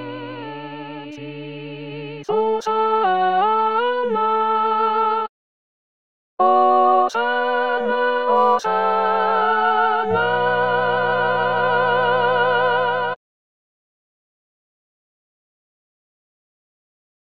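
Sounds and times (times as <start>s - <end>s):
assembly singing a Sanctus: 0.0s - 5.2s, 6.4s - 13.2s.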